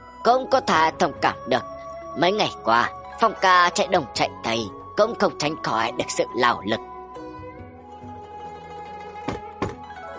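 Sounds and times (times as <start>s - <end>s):
humming musical background: 0.0s - 10.1s
speech: 0.2s - 6.9s
knocks on a door: 9.3s - 9.8s.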